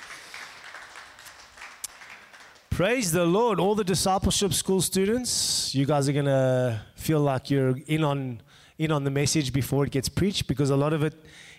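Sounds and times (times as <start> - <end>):
audience applause: 0.0 - 2.8
speech: 2.8 - 11.5.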